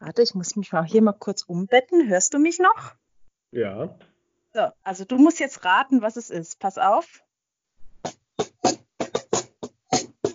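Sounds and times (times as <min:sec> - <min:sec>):
speech: 0:00.1 - 0:07.2
cajon played with hand strikes: 0:08.0 - 0:10.3.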